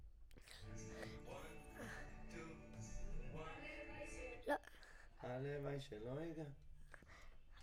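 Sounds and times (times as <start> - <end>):
vocals: 0.4 - 6.4.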